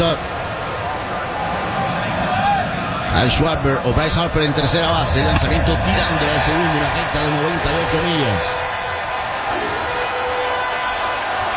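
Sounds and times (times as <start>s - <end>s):
speech: 0.0s - 0.4s, 3.1s - 8.6s
standing crowd cheering and shouting at a postseason baseball game: 0.0s - 11.5s.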